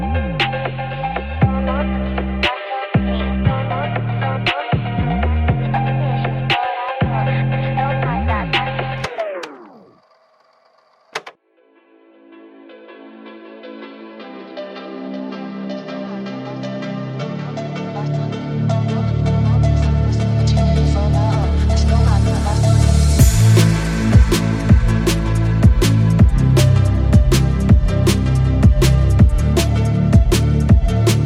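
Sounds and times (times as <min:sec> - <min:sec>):
boosted bass: 0:00.0 - 0:09.1, 0:18.4 - 0:31.2.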